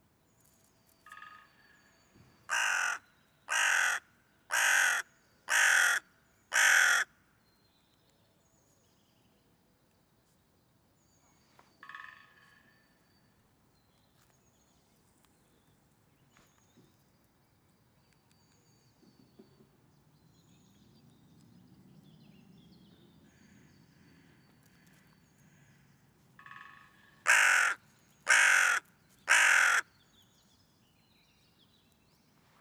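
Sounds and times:
hooded crow Corvus cornix cornix calling: 2.5s - 7.1s, 26.4s - 30.0s.

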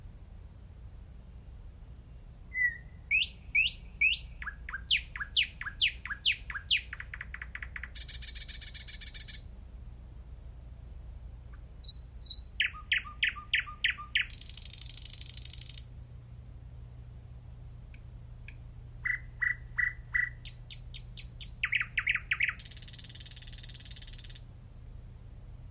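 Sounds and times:
thrush nightingale Luscinia luscinia singing: 1.4s - 9.6s, 11.1s - 16.0s, 17.5s - 24.7s.

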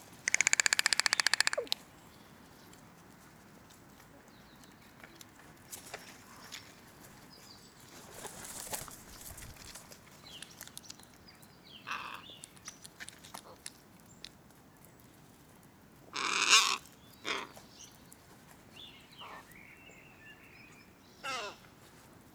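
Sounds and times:
hooded crow Corvus cornix cornix calling: 0.2s - 1.8s, 11.8s - 12.3s, 16.2s - 17.6s, 21.2s - 21.7s.

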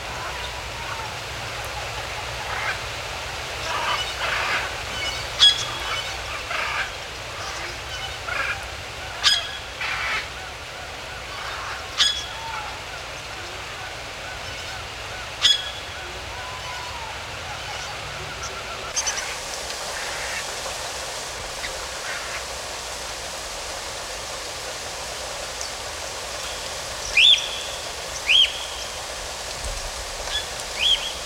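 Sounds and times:
rain in a forest: 0.0s - 31.2s
birds singing in a forest: 3.5s - 22.4s, 25.6s - 29.1s, 30.2s - 31.2s.

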